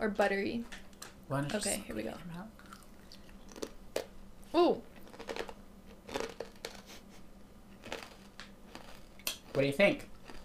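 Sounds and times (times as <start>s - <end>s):
speech: 0.0s - 2.6s, 4.5s - 4.9s, 9.6s - 10.1s
low steady hum: 0.0s - 10.4s
person biting and chewing a sweet potato chip: 2.6s - 3.8s, 5.0s - 7.0s, 7.8s - 10.4s.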